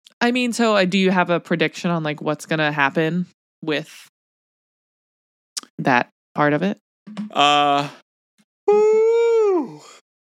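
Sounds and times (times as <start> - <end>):
speech: 0.2 - 4.1, 5.8 - 8.0, 8.7 - 10.0
big yawn: 7.4 - 8.0, 8.7 - 10.0.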